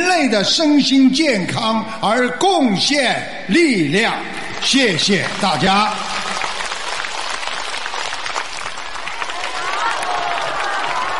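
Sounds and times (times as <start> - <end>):
speech: 0.2 - 6.2
audience applause: 4.3 - 11.1.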